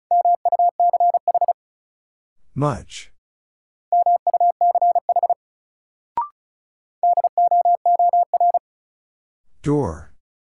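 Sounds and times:
Morse code beeps at 35 words per minute: 0.1s - 1.6s, 3.9s - 5.4s, 7.0s - 8.6s
speech: 2.6s - 3.1s, 9.6s - 10.1s.

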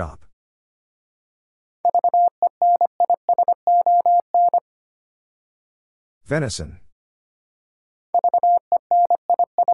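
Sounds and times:
morse code at 25wpm: 1.9s - 4.6s, 8.1s - 9.7s.

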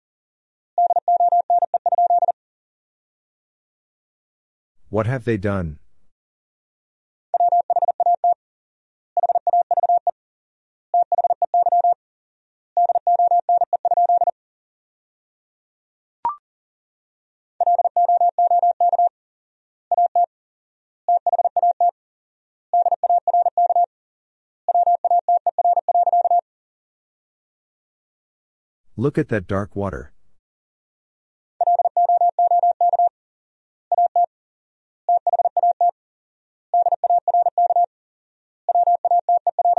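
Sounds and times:
Morse code tones sent at 40 wpm: 0.8s - 2.3s, 7.3s - 8.4s, 9.2s - 10.1s, 11.0s - 12.0s, 12.8s - 14.3s, 17.6s - 19.1s, 19.9s - 20.2s, 21.1s - 21.9s, 22.8s - 23.9s, 24.7s - 26.4s, 31.6s - 33.1s, 33.9s - 34.3s, 35.1s - 35.9s, 36.7s - 37.9s, 38.7s - 39.7s
speech: 4.9s - 5.8s, 29.0s - 30.1s.

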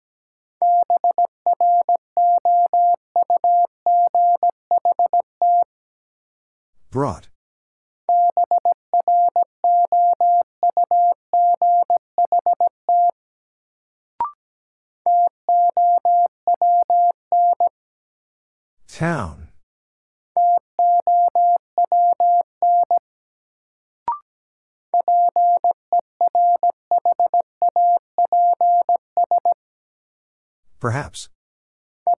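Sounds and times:
Morse code beeps at a steady mid pitch: 0.6s - 5.7s, 8.1s - 13.1s, 15.1s - 17.7s, 20.4s - 23.0s, 25.0s - 29.6s
person speaking words: 6.9s - 7.3s, 18.9s - 19.5s, 30.8s - 31.3s.

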